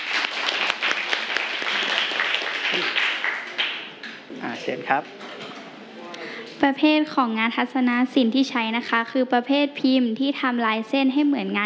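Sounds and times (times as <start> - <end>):
classroom applause for presenting students: 0.0 - 4.3
speech: 4.7 - 5.2, 6.6 - 11.6.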